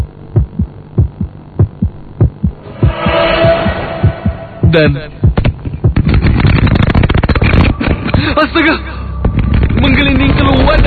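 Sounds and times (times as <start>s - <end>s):
fast pounding heartbeat: 0.0s - 7.3s
faint hum: 0.0s - 10.8s
rising hiss and drone: 2.5s - 5.4s
speech: 4.7s - 5.2s, 8.5s - 8.9s.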